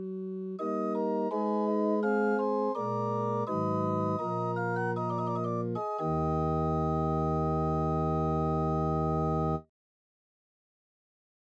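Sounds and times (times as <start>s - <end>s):
Gedackt organ pipe 8 and 4 foot: 0.0s - 9.6s.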